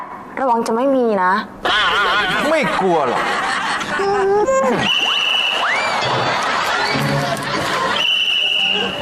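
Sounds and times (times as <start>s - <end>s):
speech: 0.4s - 5.1s
laughter: 1.6s - 9.0s
whistling by blowing on a leaf: 4.8s - 6.0s, 7.9s - 9.0s.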